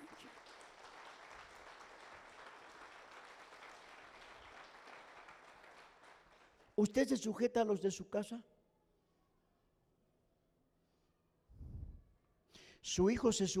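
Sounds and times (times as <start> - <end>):
crowd applause: 0.0 - 6.7
speech: 6.8 - 8.5, 13.0 - 13.5.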